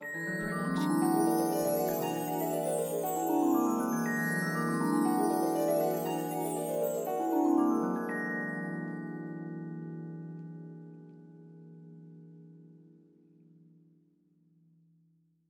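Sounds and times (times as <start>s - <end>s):
fantasy glissando: 0.0s - 9.4s.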